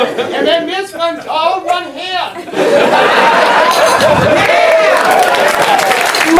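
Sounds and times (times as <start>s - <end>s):
people laughing: 0.0s - 6.2s
crowd cheering at a circus: 2.5s - 6.3s
clapping: 4.3s - 6.3s.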